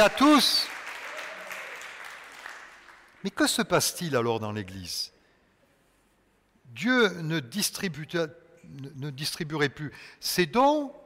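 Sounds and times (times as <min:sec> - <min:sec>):
speech: 0:00.0 - 0:00.7, 0:03.2 - 0:05.1, 0:06.7 - 0:11.0
crowd applauding: 0:00.0 - 0:03.3.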